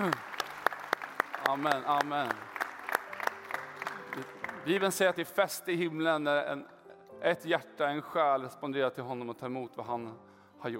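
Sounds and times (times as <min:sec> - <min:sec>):
speech: 0:00.0 - 0:00.3, 0:01.5 - 0:02.5, 0:04.2 - 0:10.7
audience applauding: 0:00.0 - 0:05.2.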